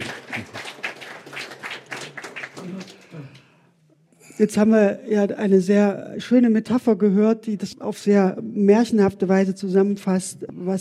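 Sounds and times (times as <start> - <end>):
audience applause: 0.0 - 3.4
speech: 4.4 - 10.8.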